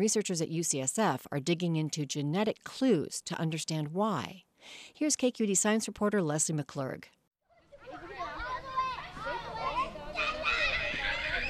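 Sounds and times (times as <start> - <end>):
speech: 0.0 - 7.2
children playing in a park: 7.5 - 11.4.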